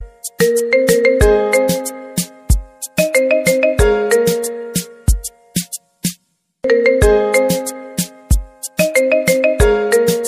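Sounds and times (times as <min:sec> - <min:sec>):
marimba playing Bollywood music: 0:00.3 - 0:02.3, 0:02.9 - 0:05.2, 0:06.6 - 0:10.2.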